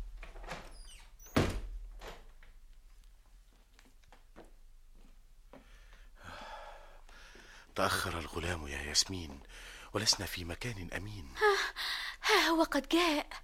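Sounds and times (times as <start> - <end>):
door closing: 0.0 - 2.4
speech: 7.8 - 13.4.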